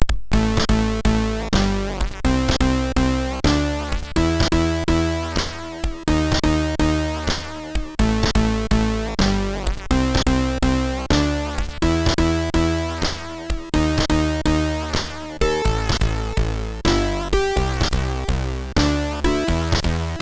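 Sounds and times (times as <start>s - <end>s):
MOS6581R3 sound chip music: 0.4s - 20.2s.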